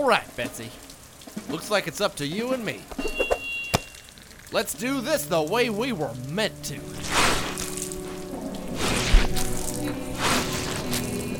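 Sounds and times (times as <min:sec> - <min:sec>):
speech: 0:00.0 - 0:03.4, 0:04.5 - 0:07.4
shoveling wet sludge: 0:06.8 - 0:11.3.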